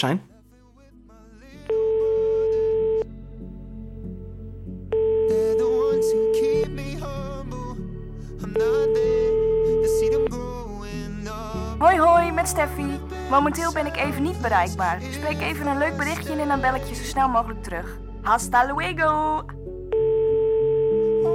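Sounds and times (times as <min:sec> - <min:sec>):
speech: 0:00.0 - 0:00.3, 0:11.9 - 0:19.6
quiet music: 0:00.0 - 0:21.3
phone call ringing tone: 0:01.7 - 0:03.1, 0:04.9 - 0:06.7, 0:08.5 - 0:10.3, 0:19.9 - 0:21.3.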